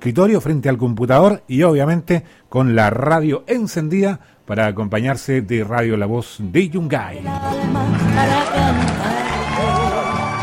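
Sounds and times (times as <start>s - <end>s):
speech: 0.0s - 9.2s
applause: 7.8s - 10.4s.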